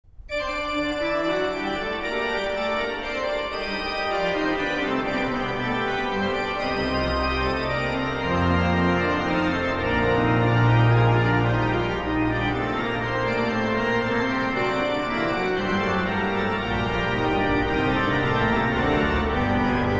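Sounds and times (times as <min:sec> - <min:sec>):
organ: 0:00.3 - 0:19.9.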